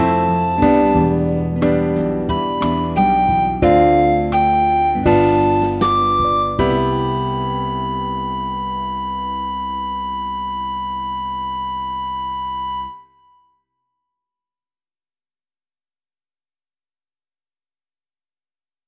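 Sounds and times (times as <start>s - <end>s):
recorder practice: 0.0s - 13.3s.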